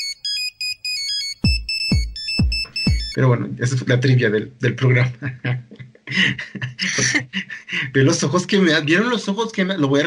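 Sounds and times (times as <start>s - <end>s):
synthesized ringtone melody: 0.0s - 3.2s
punchy low beats: 1.5s - 3.2s
speech: 3.2s - 10.0s
laughter: 5.1s - 8.0s.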